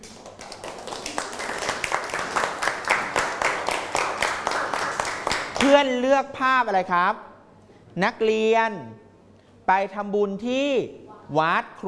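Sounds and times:
classroom of students clapping: 0:00.0 - 0:05.9
speech: 0:05.6 - 0:07.3, 0:08.0 - 0:09.0, 0:09.7 - 0:11.8.

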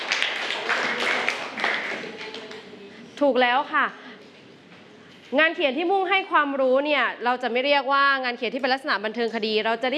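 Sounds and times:
students clapping: 0:00.0 - 0:02.7
speech: 0:03.2 - 0:04.1, 0:05.3 - 0:09.9.

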